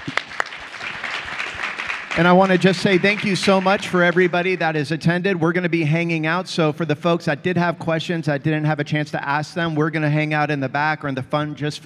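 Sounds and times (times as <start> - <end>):
audience applause: 0.0 - 4.7
speech: 2.2 - 11.8.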